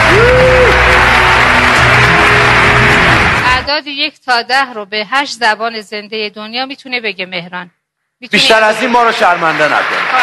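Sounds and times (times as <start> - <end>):
audience clapping: 0.0 - 3.7, 8.5 - 10.2
speech: 3.8 - 10.2.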